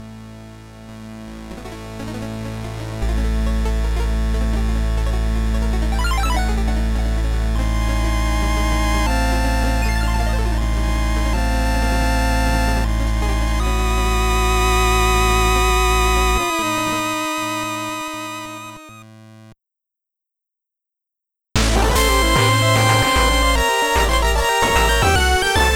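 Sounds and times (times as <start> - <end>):
8-bit opening music: 3.1 - 19.4, 21.6 - 25.7.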